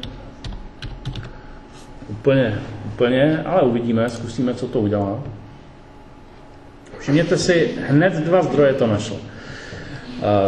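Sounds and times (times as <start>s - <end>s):
typing a search keyword on a computer keyboard: 0.0s - 1.4s
speech: 2.1s - 5.4s, 7.1s - 9.3s, 10.2s - 10.4s.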